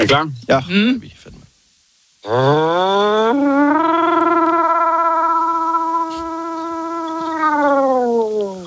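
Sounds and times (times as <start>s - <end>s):
speech: 0.0s - 1.4s, 2.2s - 4.4s
caller imitating a siren: 2.2s - 8.6s.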